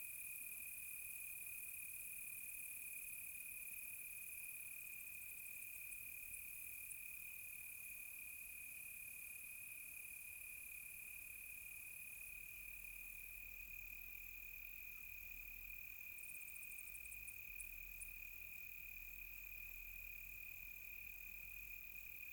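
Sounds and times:
close crickets on a quiet tropical night: 0.0 - 22.3.

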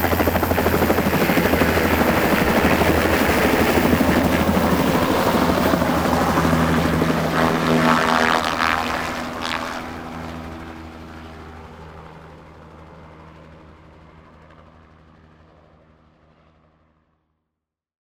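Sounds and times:
helicopter starting: 0.0 - 10.4.

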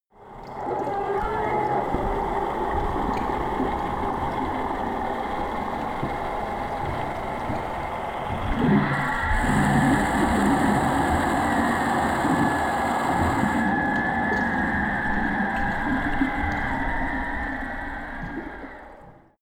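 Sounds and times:
water sound effects: 0.2 - 19.4.

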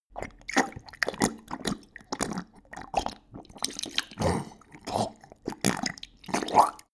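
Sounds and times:
dog drinking: 0.1 - 6.9.

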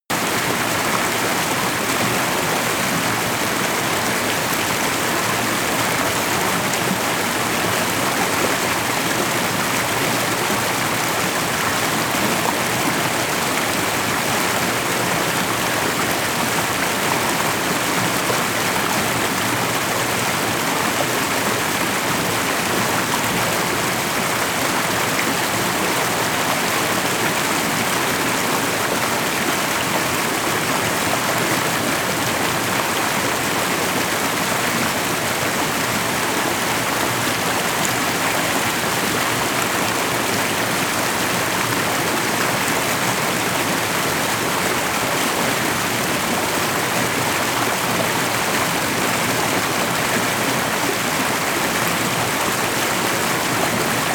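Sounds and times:
large creek flowing: 0.1 - 54.1.

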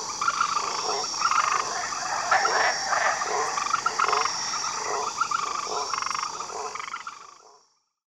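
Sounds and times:
insects buzzing in a jungle: 0.0 - 7.8
frogs croaking in a jungle: 0.0 - 7.9.

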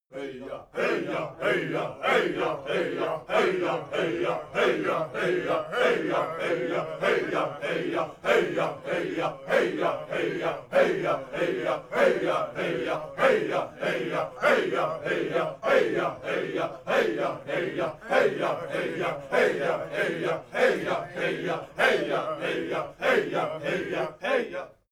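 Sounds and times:
simple chants: 0.1 - 24.9.

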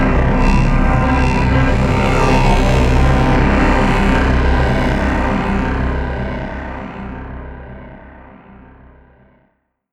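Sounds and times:
talk box drone: 0.2 - 5.7.

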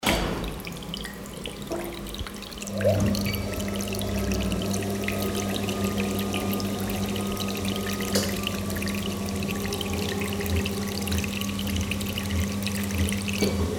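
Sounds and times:
spigot running: 0.1 - 13.6.

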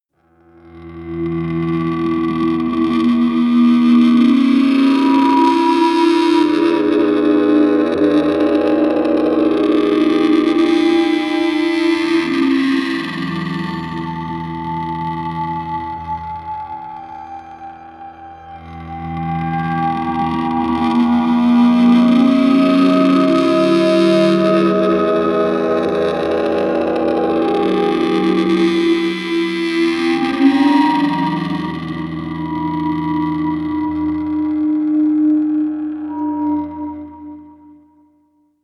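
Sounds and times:
ghost ship synth pads: 0.5 - 37.9.

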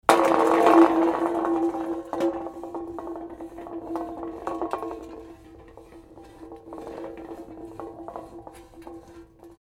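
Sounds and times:
paint tin falling and rolling off: 0.0 - 9.5.

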